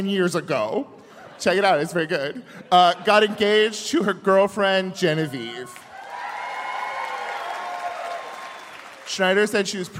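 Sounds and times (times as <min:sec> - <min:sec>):
speech: 0:00.0 - 0:05.8, 0:09.1 - 0:09.9
light crowd cheering: 0:05.7 - 0:09.5
audience applause after a joke: 0:05.8 - 0:09.5.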